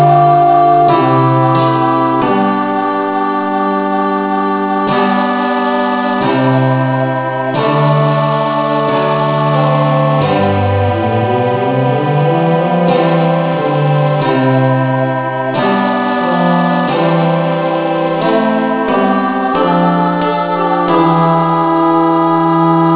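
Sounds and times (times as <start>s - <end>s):
instrumental music in the key of C: 0.0s - 22.9s.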